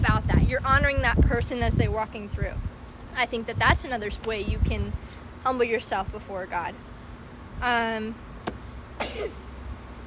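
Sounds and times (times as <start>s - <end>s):
speech: 0.6s - 6.9s, 7.6s - 8.2s, 9.2s - 9.4s
person sneezing: 9.0s - 9.4s.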